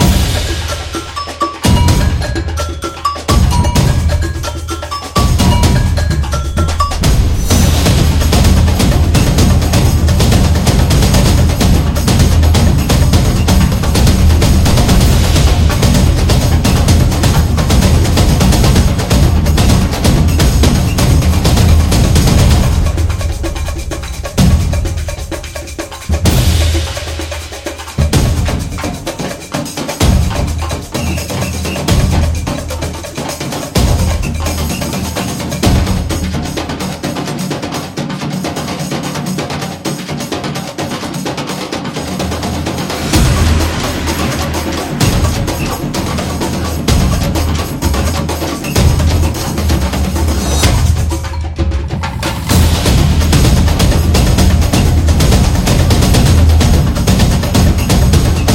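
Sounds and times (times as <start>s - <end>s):
Latin American music: 0.0s - 58.5s.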